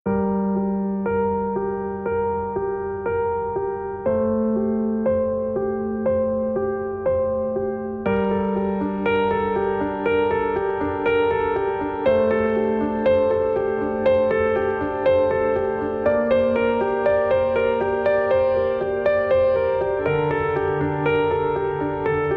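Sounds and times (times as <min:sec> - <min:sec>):
solo piano: 0:00.0 - 0:22.3.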